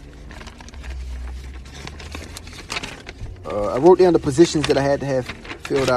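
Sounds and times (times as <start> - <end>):
low steady hum: 0.0 - 5.9
paper rustling: 0.0 - 5.9
speech: 3.5 - 5.9.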